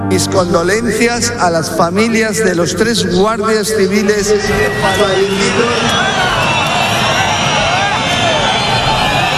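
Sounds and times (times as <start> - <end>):
speech: 0.2 - 6.3
large crowd booing and jeering: 3.9 - 9.3.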